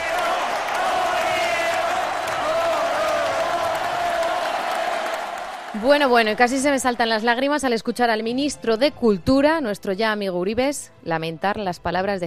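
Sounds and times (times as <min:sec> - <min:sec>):
crowd ovation: 0:00.0 - 0:07.3
speech: 0:05.8 - 0:12.2.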